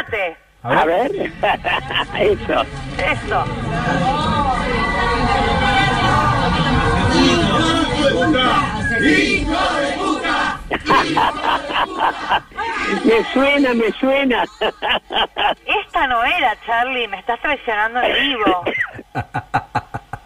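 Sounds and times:
speech: 0.0s - 4.4s, 8.1s - 9.8s, 10.8s - 19.8s
laughter: 0.7s - 8.8s, 10.3s - 15.9s, 18.1s - 20.2s
crowd chanting a protest march song: 1.3s - 15.1s.

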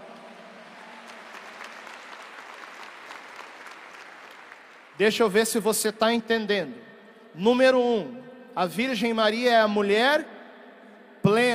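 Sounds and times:
audience applause: 0.0s - 5.0s
speech: 5.0s - 10.3s.

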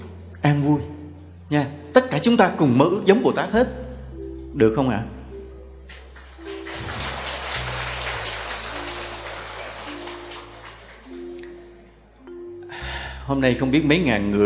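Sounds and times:
speech: 0.4s - 0.9s, 1.5s - 3.8s, 4.6s - 5.2s, 13.3s - 14.4s
audience applause: 6.2s - 11.4s.

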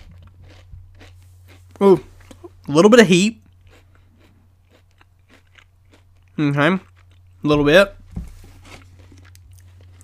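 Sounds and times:
crunching and chewing a hot honey flavored snack: 0.0s - 10.0s
low steady hum: 0.0s - 10.0s
speech: 1.8s - 2.1s, 2.7s - 3.4s, 6.4s - 8.0s.

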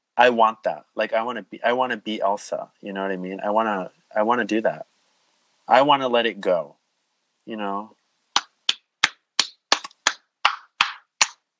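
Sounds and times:
speech: 0.2s - 4.9s, 5.7s - 6.8s, 7.5s - 8.0s
hand claps: 8.4s - 11.4s.

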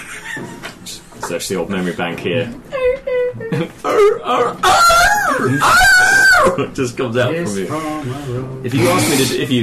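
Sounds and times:
speech: 1.3s - 9.6s
person imitating a screaming seal: 3.9s - 6.6s.

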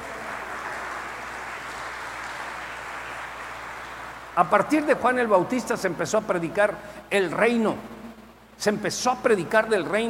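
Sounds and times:
audience applause: 0.0s - 4.4s
speech: 4.4s - 7.9s, 8.6s - 10.0s.

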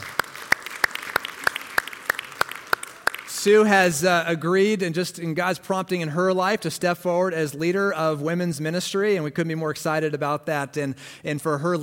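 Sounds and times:
audience applause: 0.0s - 3.7s
sharp rhythmic claps: 0.0s - 3.8s
speech: 3.4s - 11.8s.

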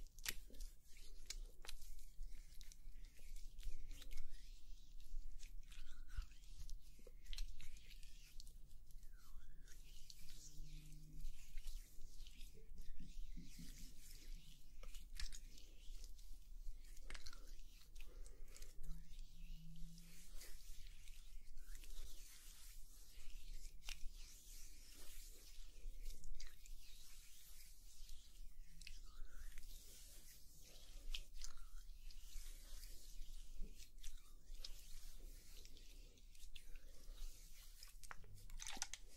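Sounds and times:
slick wet oil massage rubbing: 0.2s - 39.1s.

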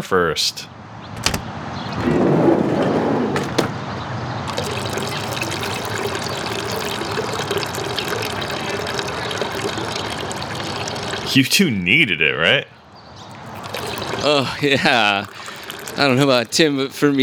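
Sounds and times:
speech: 0.0s - 1.3s, 2.0s - 2.3s, 11.3s - 12.8s, 14.2s - 17.2s
urinating into a toilet: 2.0s - 11.4s, 13.3s - 17.2s.

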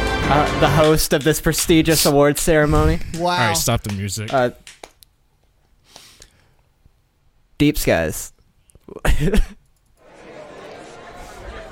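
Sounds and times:
speech: 0.3s - 4.7s, 7.6s - 8.3s, 8.9s - 9.6s
laughter: 9.0s - 11.7s
crowd chatter of many voices: 10.0s - 11.7s.

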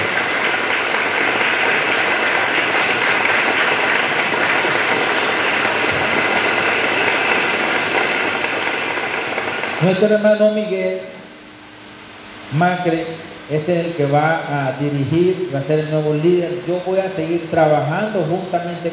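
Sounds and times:
audience applause: 0.0s - 10.1s
speech: 9.8s - 11.1s, 12.5s - 18.9s.

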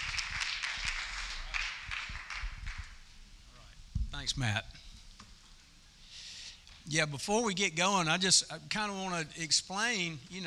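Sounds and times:
audience round of applause: 0.0s - 3.0s
speech: 4.2s - 4.8s, 6.9s - 10.4s.

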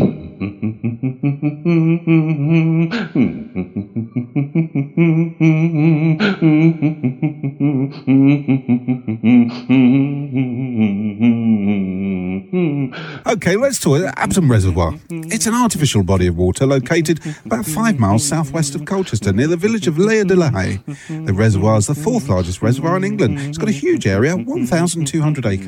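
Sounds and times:
man humming: 0.0s - 25.6s
speech: 1.4s - 4.2s, 13.4s - 25.6s.

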